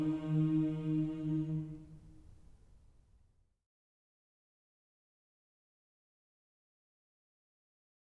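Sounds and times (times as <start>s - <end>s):
mixed choir singing a school song: 0.0s - 2.2s.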